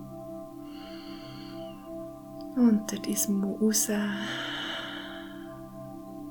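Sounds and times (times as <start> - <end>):
steady gentle tonal drone: 0.0 - 6.2
deep inhale through the nose during a breathing meditation: 0.6 - 2.0, 4.1 - 6.0
speech: 2.6 - 4.5.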